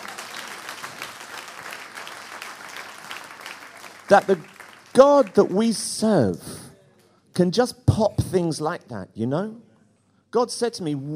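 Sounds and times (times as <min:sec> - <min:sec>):
audience clapping: 0:00.0 - 0:05.9
speech: 0:04.1 - 0:06.7, 0:07.4 - 0:09.7, 0:10.3 - 0:11.1.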